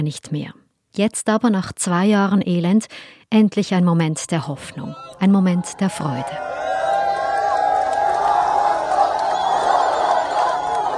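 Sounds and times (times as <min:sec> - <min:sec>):
speech: 0:00.0 - 0:06.6
Palestinians cheering in the streets: 0:04.6 - 0:10.9.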